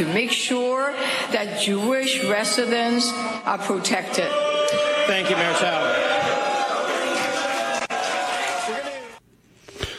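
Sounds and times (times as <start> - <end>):
speech: 0.0 - 6.5
crowd cheering and booing: 2.2 - 9.2.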